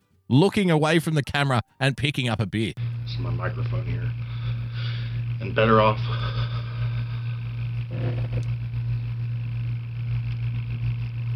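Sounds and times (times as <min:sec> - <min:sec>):
speech: 0:00.3 - 0:04.2, 0:05.4 - 0:06.4, 0:07.9 - 0:08.6
room fan hum: 0:02.8 - 0:11.3.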